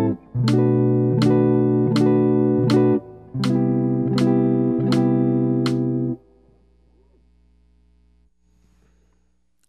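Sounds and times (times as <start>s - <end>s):
jazz music: 0.0s - 6.2s.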